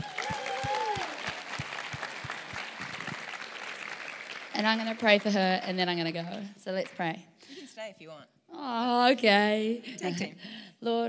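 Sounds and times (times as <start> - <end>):
audience applause: 0.0 - 5.8
speech: 4.6 - 11.0.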